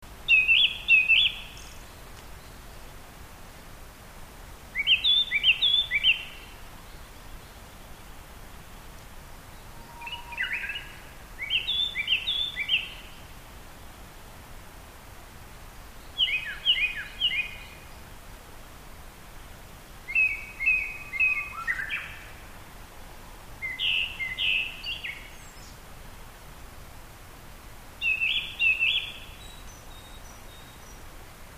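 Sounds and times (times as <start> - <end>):
background hiss: 0.0 - 31.5
Japanese thrush whistling song: 0.3 - 1.8, 4.7 - 6.6, 9.6 - 13.1, 20.1 - 22.3, 23.6 - 25.8, 28.0 - 31.0.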